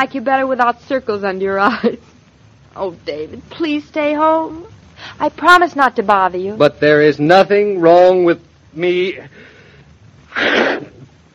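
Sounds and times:
speech: 0.0 - 2.0, 2.8 - 9.5, 10.4 - 10.9
sneeze: 10.3 - 11.0.

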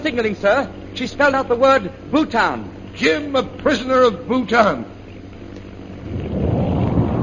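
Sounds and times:
speech: 0.0 - 4.9
bomb explosion: 6.1 - 7.2.

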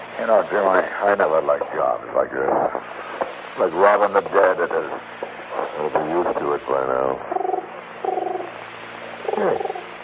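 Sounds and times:
speech: 0.2 - 5.2, 5.8 - 7.4, 9.4 - 9.7
pigeon cooing on a windowsill: 7.3 - 8.5, 9.2 - 10.0.

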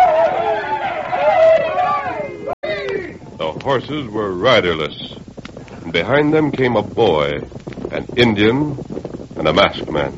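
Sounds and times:
crowd crying out in rage: 0.0 - 3.2
speech: 3.7 - 5.1, 6.0 - 10.1.

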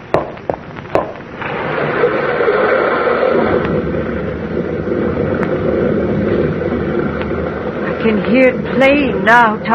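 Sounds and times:
rock slide in a river gorge: 1.4 - 8.6
speech: 8.3 - 9.7.

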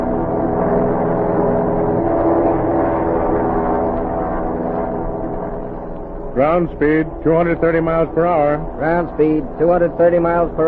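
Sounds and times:
high-speed heavy bomber aircraft engine: 0.0 - 10.6
speech: 6.4 - 10.6.

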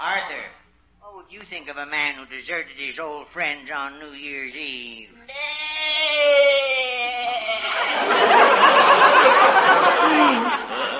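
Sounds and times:
speech: 0.1 - 0.6, 1.3 - 6.6
goat bleating: 5.3 - 6.4
audience laughter: 7.6 - 10.9.

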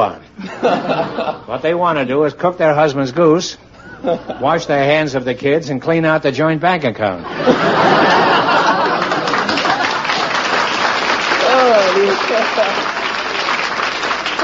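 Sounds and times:
speech: 0.0 - 8.3
laughter: 0.4 - 1.6, 3.8 - 4.6, 7.2 - 10.8
audience applause: 7.9 - 14.4.

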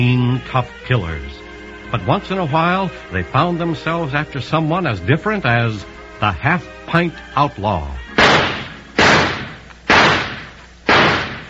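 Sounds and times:
speech: 0.0 - 8.1
gunshots at target practice: 8.1 - 11.4.

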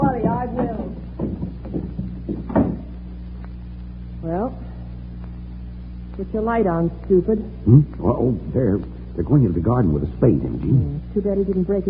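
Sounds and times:
soft knocks and low thuds of a door opening onto a garden: 0.0 - 2.9
speech: 6.2 - 11.8.

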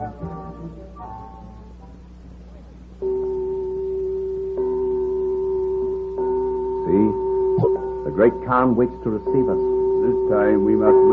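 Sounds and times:
death gong struck: 3.0 - 11.1
speech: 8.2 - 11.1.

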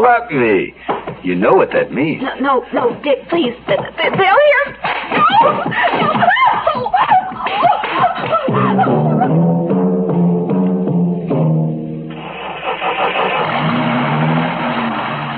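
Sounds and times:
speech: 0.0 - 9.4
laughter: 5.1 - 9.7
steady engine rumble: 8.3 - 15.3
car engine cranking, failing to start: 9.5 - 15.3.

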